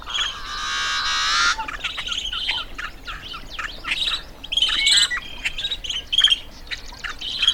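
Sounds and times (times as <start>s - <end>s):
chirps, clicks and squawks from other birds: 0.0s - 2.7s
yellow-headed blackbird song: 0.0s - 7.5s.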